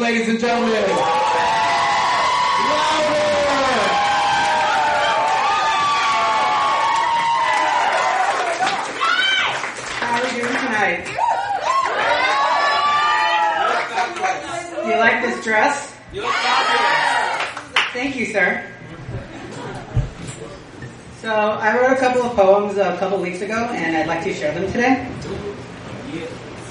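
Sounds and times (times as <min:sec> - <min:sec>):
speech: 0:00.0 - 0:01.1, 0:15.0 - 0:16.8, 0:18.0 - 0:19.0, 0:21.2 - 0:25.4
audience cheering and whooping: 0:00.6 - 0:14.8, 0:16.1 - 0:17.8
high whoops and yells from the crowd: 0:00.9 - 0:09.7, 0:11.1 - 0:14.1, 0:16.1 - 0:17.6.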